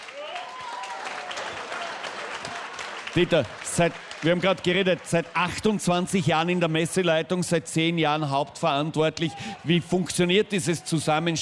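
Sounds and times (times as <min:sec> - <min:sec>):
audience applause at a Frühschoppen folk festival: 0:00.0 - 0:07.1
speech: 0:03.1 - 0:11.4.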